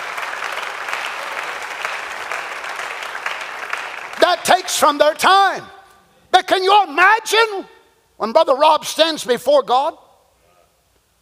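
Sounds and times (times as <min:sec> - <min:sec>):
audience hand clapping: 0:00.0 - 0:04.8
speech: 0:04.2 - 0:10.0.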